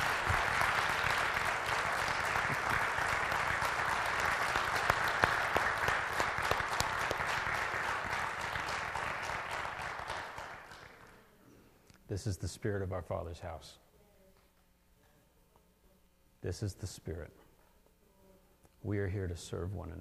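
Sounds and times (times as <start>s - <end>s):
audience applause: 0.0s - 11.1s
speech: 12.2s - 13.9s, 16.4s - 17.4s, 18.8s - 19.9s.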